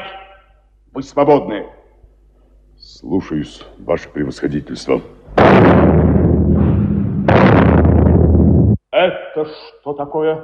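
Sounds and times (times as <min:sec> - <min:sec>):
speech: 0:01.0 - 0:01.8, 0:02.9 - 0:06.1, 0:09.0 - 0:10.4
Japanese artillery shelling a battery, radio drama effect: 0:05.3 - 0:08.8.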